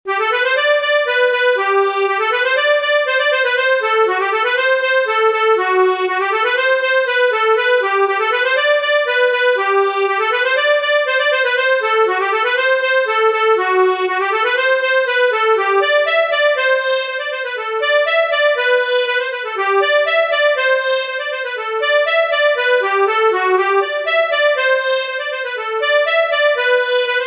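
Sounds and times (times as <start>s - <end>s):
polka music: 0.1s - 27.2s.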